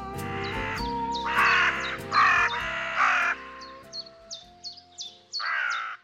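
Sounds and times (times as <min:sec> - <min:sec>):
raven calls: 0:00.3 - 0:03.8, 0:05.4 - 0:05.9.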